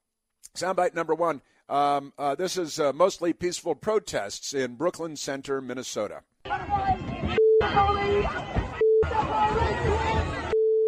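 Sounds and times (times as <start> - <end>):
speech: 0.5 - 10.3
crowd chatter: 6.5 - 10.7
censor bleeps over shouted speech: 7.4 - 7.8, 8.8 - 9.1, 10.5 - 10.8.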